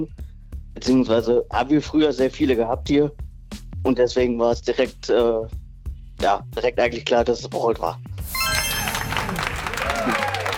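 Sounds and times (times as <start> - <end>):
speech: 0.0 - 3.2, 3.8 - 5.6, 6.2 - 8.1
audience applause: 8.4 - 10.5.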